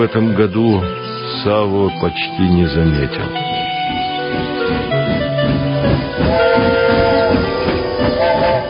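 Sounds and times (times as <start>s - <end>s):
speech: 0.2s - 3.6s
train wheels steady clacking: 2.7s - 8.6s
long hoarse steam locomotive whistle: 6.0s - 8.6s.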